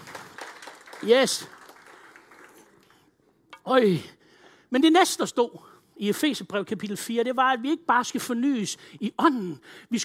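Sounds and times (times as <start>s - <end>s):
audience applause: 0.0s - 2.9s
speech: 1.0s - 1.6s, 3.6s - 10.0s.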